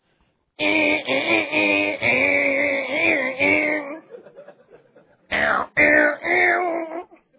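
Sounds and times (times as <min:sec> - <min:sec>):
voice imitating a distorted electric guitar: 0:00.6 - 0:04.1, 0:05.3 - 0:07.2
laughter: 0:03.5 - 0:05.3, 0:07.1 - 0:07.3.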